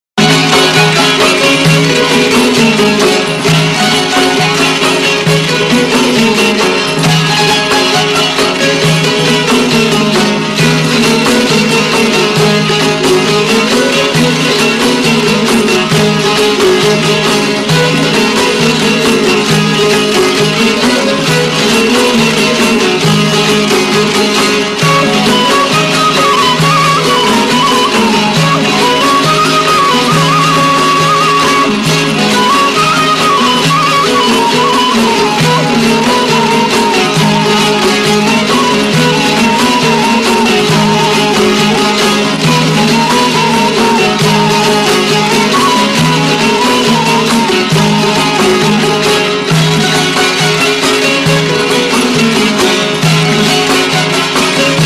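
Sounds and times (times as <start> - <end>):
instrumental music: 0.2 - 54.8.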